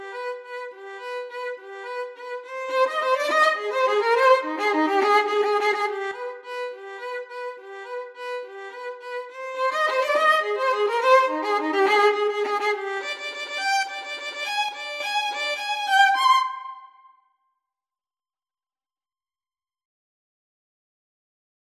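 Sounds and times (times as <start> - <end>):
violin and viola duet: 0.0 - 16.9.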